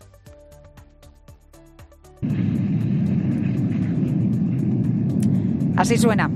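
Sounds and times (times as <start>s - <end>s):
volcanic lava flow advancing toward the sea: 2.2s - 6.3s.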